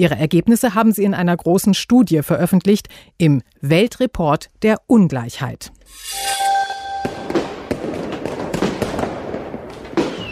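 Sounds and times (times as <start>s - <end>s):
speech: 0.0s - 6.6s
firework whistling tone: 5.9s - 8.5s, 10.0s - 10.2s
fireworks crackling and popping with sharp bangs: 7.0s - 10.2s.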